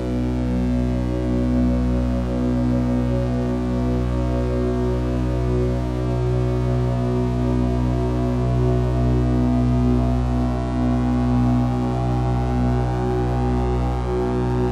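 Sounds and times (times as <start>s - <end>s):
meditation drone: 0.0s - 14.6s.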